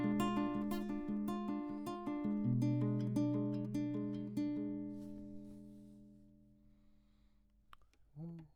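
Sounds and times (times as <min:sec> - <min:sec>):
classical guitar: 0:00.0 - 0:06.6.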